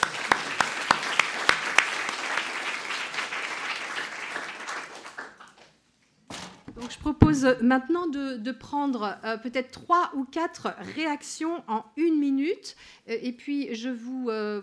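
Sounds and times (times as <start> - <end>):
audience applause: 0.0 - 5.7
speech: 7.4 - 14.6.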